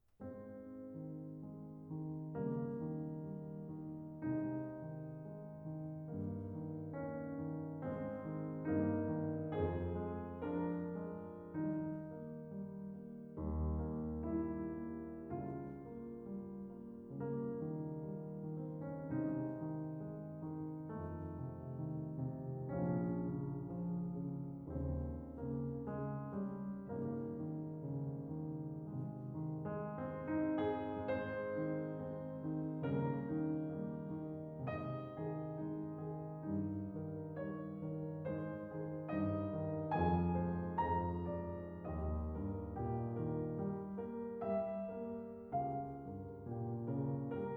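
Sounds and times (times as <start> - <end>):
Blüthner Model One piano: 0.0 - 47.5.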